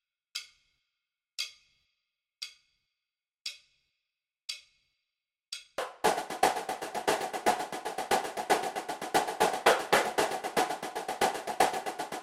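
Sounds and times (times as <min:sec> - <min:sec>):
snare drum cadence: 0:05.8 - 0:12.2.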